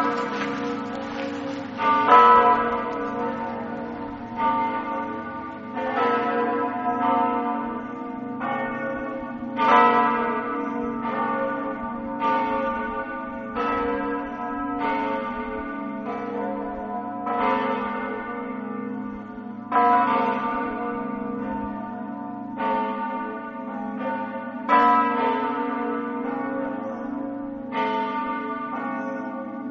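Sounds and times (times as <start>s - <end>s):
church bells ringing in Mortegliano: 0.0s - 29.6s.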